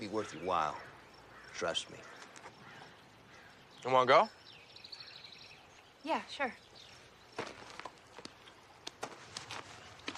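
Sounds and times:
speech: 0.0 - 0.9, 1.6 - 2.2, 3.8 - 4.4, 6.0 - 6.6
footsteps of two people walking toward rocks: 7.4 - 10.1.

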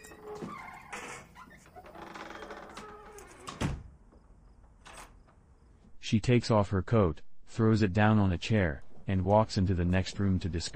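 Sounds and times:
door being unlocked and opened: 0.0 - 3.9
speech: 6.1 - 10.7.

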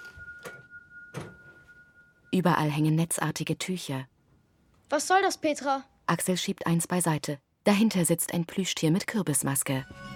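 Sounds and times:
door closing: 0.4 - 1.6
speech: 2.4 - 4.1, 4.9 - 10.1.

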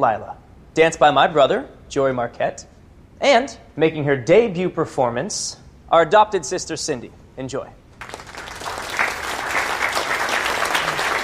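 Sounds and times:
speech: 0.0 - 8.1
audience applause: 8.0 - 11.2.

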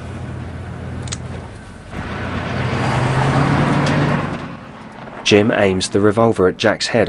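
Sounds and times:
police car engine pulling onto a highway: 0.0 - 7.0
speech: 5.3 - 7.0.

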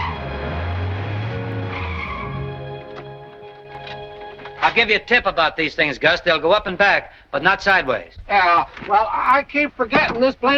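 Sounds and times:
estate car tire squeal skidding to a stop: 0.0 - 3.2
estate car engine rumbling: 0.0 - 6.2
speech: 4.6 - 10.5.

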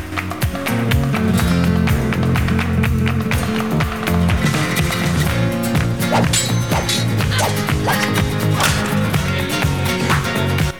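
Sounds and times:
sustained musical bed: 0.0 - 10.7
sword and scabbard metallic clangs and whacks in a fight: 6.1 - 9.0.

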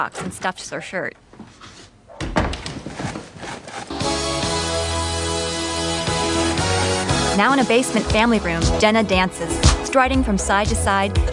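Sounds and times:
speech: 0.0 - 1.6, 7.4 - 11.3
door closing: 1.4 - 3.4
loud music with sustained tones: 4.0 - 11.3.

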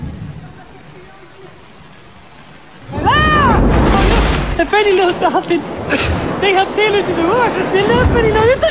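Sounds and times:
waves crashing against rocks: 0.4 - 8.6
speech: 4.8 - 8.6.

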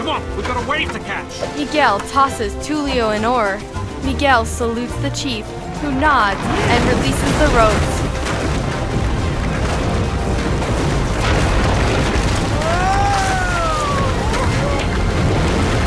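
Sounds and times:
speech: 0.2 - 8.1
tower crashing into water: 7.4 - 15.8.

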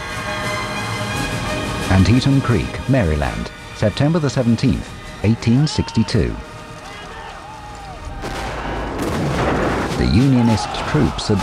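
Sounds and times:
continuous rumbling battlefield din: 0.0 - 11.4
speech: 1.9 - 6.5, 10.0 - 11.4
cannon blasts on a Civil War battlefield at Antietam Creek Maryland: 8.2 - 11.4.

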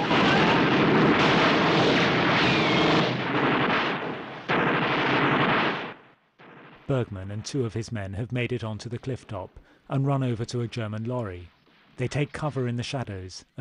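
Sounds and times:
heavy gunfire and blasts in a film's beach battle scene: 0.0 - 6.9
speech: 6.9 - 13.5.

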